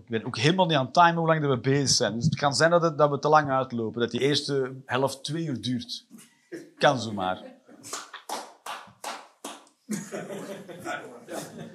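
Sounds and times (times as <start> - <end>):
speech: 0.1 - 8.1
applause: 7.9 - 9.7
laughter: 9.9 - 11.7.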